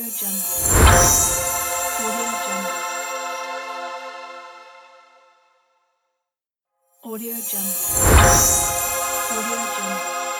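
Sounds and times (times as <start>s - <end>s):
magic transformation effect: 0.4s - 2.6s, 7.5s - 10.3s.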